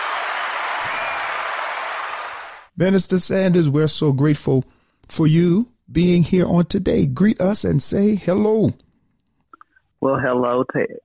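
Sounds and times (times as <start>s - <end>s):
audience applause welcoming a guest: 0.0s - 2.7s
speech: 2.8s - 8.9s, 10.0s - 11.0s.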